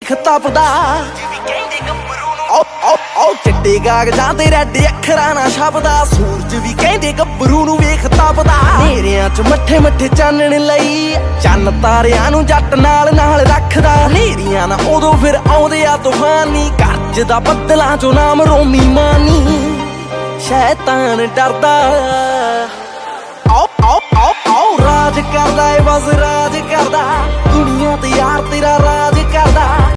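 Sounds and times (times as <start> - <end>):
Punjabi music: 0.0 - 29.9.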